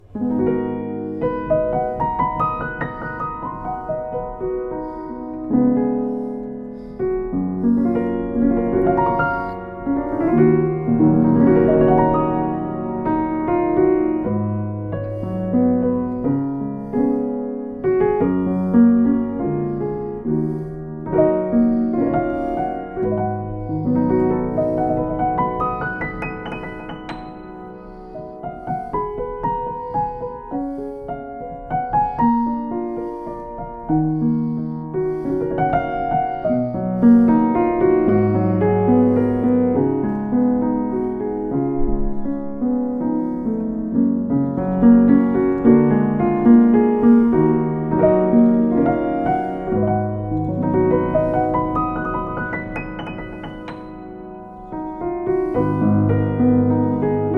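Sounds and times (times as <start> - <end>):
Yamaha M5J piano: 0.0 - 57.3.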